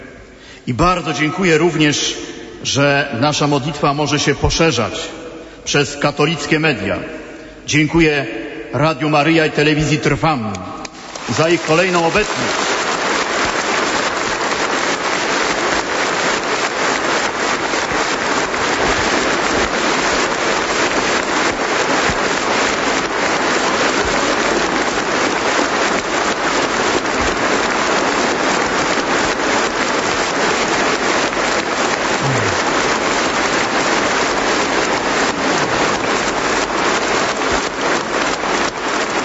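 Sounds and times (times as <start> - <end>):
speech: 0.7 - 10.7, 11.3 - 12.6
audience applause: 10.8 - 39.2.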